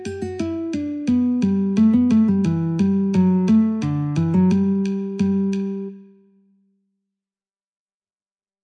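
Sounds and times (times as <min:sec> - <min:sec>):
guitar: 0:00.0 - 0:06.6.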